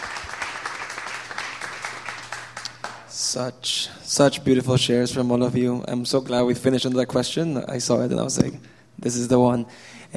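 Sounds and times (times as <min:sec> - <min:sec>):
crowd applauding: 0:00.0 - 0:03.1
speech: 0:03.3 - 0:10.1.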